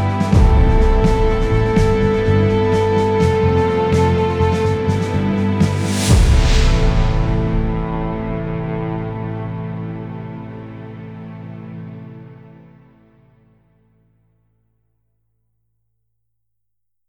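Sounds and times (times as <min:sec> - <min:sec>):
dramatic trailer music: 0:00.0 - 0:13.0.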